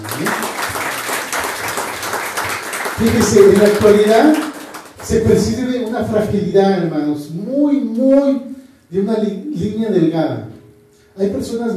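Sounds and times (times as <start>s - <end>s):
audience applause: 0.0s - 5.0s
speech: 3.0s - 4.5s, 5.1s - 10.5s, 11.2s - 11.7s.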